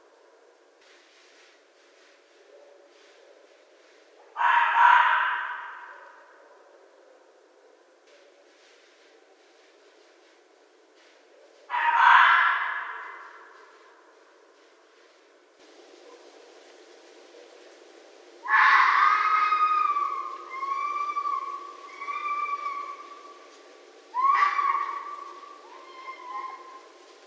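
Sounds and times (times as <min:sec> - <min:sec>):
red fox rasping scream and whining cries: 0:04.4 - 0:05.9, 0:11.7 - 0:13.4, 0:18.4 - 0:23.4, 0:24.1 - 0:26.9.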